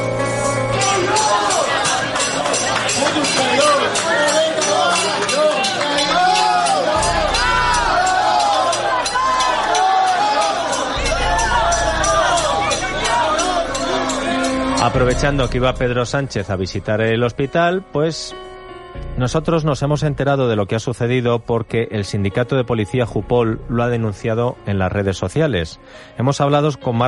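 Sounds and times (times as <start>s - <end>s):
hospital staff banging pots in protest: 0.6s - 16.0s
speech: 14.9s - 18.5s, 19.2s - 27.0s.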